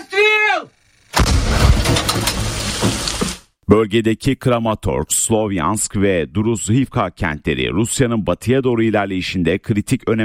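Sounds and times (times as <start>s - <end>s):
person shouting: 0.0s - 0.7s
howitzer fire shelling positions in the Donetsk region: 1.1s - 3.4s
speech: 3.7s - 10.2s.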